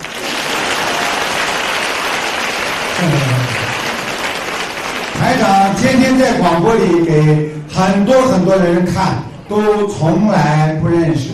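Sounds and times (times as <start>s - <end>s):
audience applause: 0.0s - 7.1s
speech: 3.0s - 3.4s, 5.3s - 11.3s.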